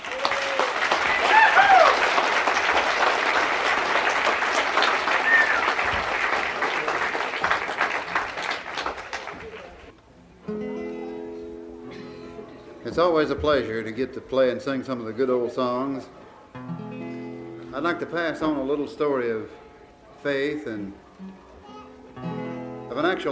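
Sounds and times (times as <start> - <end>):
audience applause welcoming a folk singer and guitarist: 0.0 - 9.9
speech: 13.0 - 16.2, 17.8 - 19.6, 20.2 - 21.4, 23.0 - 23.2.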